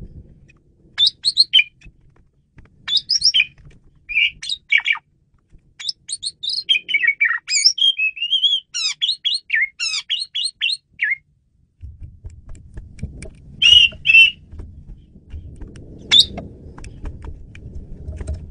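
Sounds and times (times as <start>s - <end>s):
Asian pied starling harsh calls: 1.0s - 1.8s, 2.9s - 5.0s, 5.8s - 11.2s, 13.6s - 14.5s, 16.0s - 16.4s
Asian pied starling whistling: 1.0s - 1.8s, 2.9s - 5.0s, 5.8s - 11.2s, 13.6s - 14.5s, 16.1s - 16.4s.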